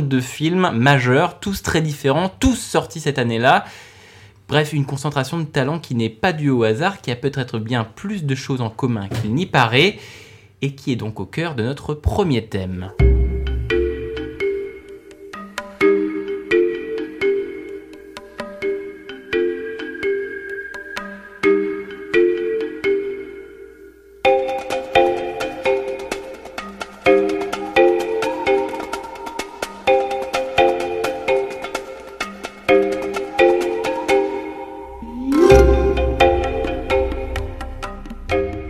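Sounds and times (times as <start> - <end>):
speech: 0.0 - 3.9, 4.5 - 13.1
film soundtrack music excerpt: 13.0 - 38.6.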